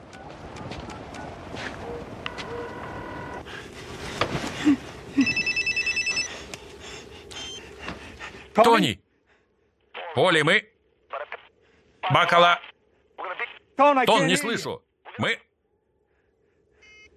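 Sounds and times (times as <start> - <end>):
phone ringing on an outgoing call: 1.9 - 3.4, 5.2 - 6.3
speech: 8.6 - 9.0, 10.2 - 10.7, 12.2 - 12.6, 13.8 - 15.5.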